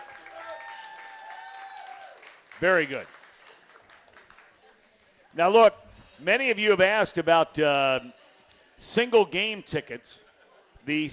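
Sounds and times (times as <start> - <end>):
audience applause: 0.0 - 5.1
speech: 2.6 - 3.2, 5.3 - 8.2, 8.8 - 10.2, 10.8 - 11.1.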